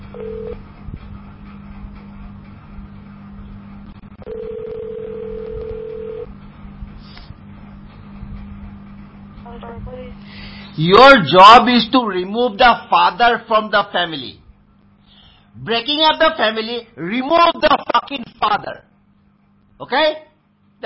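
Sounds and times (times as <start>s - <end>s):
telephone transfer tones to a police department extension: 0.0s - 0.6s, 4.2s - 6.3s
low telephone line hum: 0.0s - 20.8s
speech: 9.8s - 14.4s, 15.6s - 18.9s, 19.8s - 20.8s.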